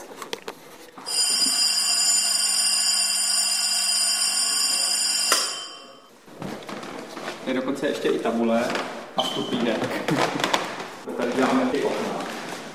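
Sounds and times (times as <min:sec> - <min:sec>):
old electric school bell ringing: 0:01.0 - 0:06.1
speech: 0:07.5 - 0:10.6, 0:11.2 - 0:12.2.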